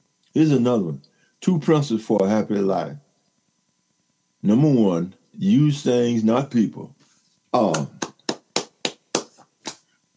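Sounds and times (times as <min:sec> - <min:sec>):
speech: 0:00.4 - 0:03.0, 0:04.4 - 0:08.0
hand clapping: 0:07.6 - 0:09.9.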